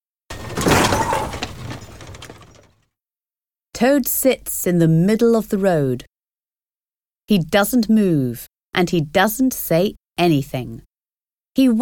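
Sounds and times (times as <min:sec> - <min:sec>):
caravan crashing over onto its side: 0:00.3 - 0:02.8
speech: 0:03.8 - 0:06.1, 0:07.3 - 0:10.9, 0:11.6 - 0:11.8.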